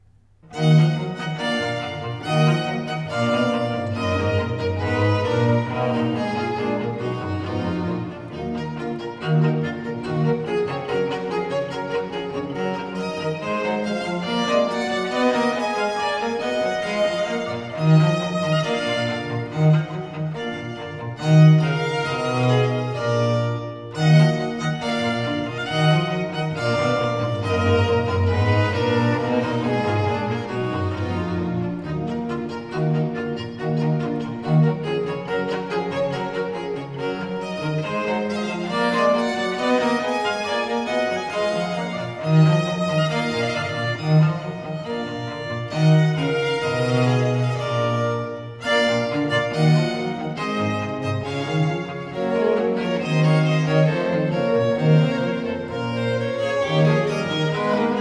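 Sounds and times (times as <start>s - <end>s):
sonata allegro in F minor: 0.0s - 57.9s.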